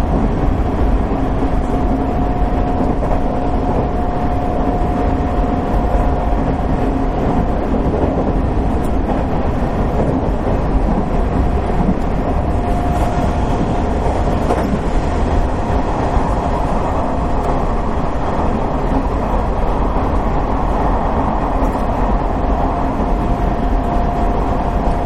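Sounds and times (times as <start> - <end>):
Nishi-Nippon Railroad 3000 series limited express train running to Fukuoka: 0.0 - 25.0.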